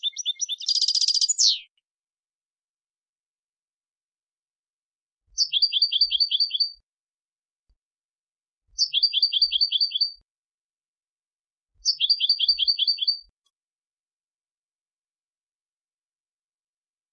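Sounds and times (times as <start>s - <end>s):
European goldfinch twittering: 0.0s - 1.7s, 5.4s - 6.7s, 8.8s - 10.2s, 11.8s - 13.2s.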